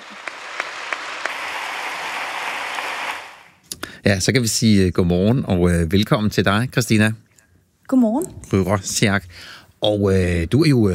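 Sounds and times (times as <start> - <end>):
audience clapping: 0.0 - 3.6
speech: 4.0 - 7.2, 7.9 - 10.9.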